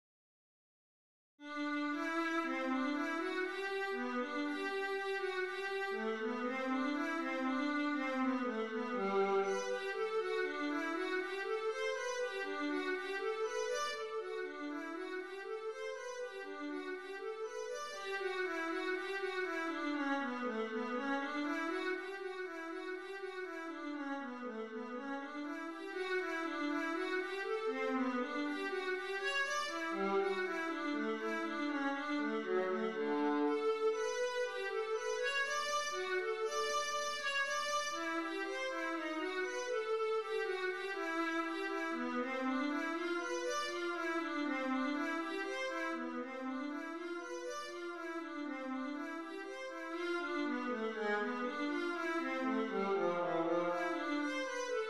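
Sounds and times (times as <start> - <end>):
viola etude: 1.6 - 54.8.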